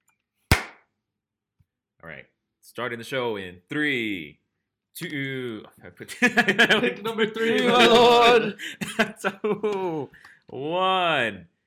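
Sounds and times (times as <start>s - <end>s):
single hand clap for audio sync: 0.5s - 0.8s
speech: 2.0s - 4.4s, 5.0s - 11.5s
laughter: 6.1s - 10.1s.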